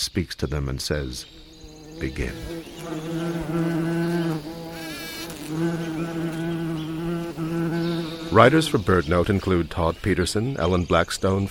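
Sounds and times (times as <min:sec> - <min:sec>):
speech: 0:00.0 - 0:01.4, 0:02.0 - 0:03.9, 0:05.5 - 0:06.4, 0:08.3 - 0:11.4
bees buzzing: 0:01.2 - 0:09.6.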